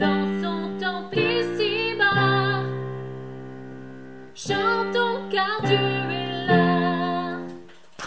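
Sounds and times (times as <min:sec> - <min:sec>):
soprano voice singing: 0:00.0 - 0:03.2, 0:04.4 - 0:07.7.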